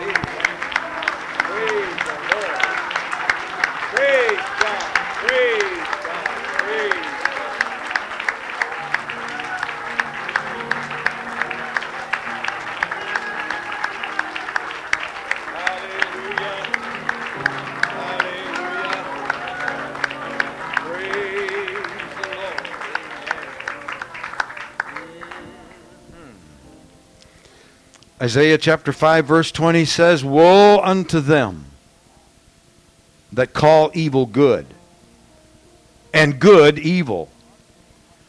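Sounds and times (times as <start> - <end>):
audience applauding: 0.0 - 26.4
speech: 28.2 - 31.7, 33.4 - 34.8, 36.2 - 37.3.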